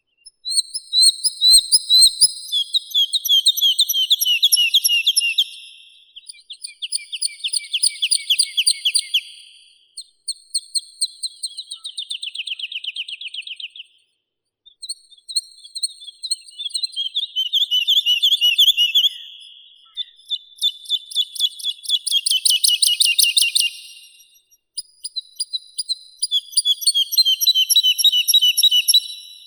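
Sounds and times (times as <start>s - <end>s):
woodlark Lullula arborea singing: 0.0s - 9.5s, 16.2s - 29.4s.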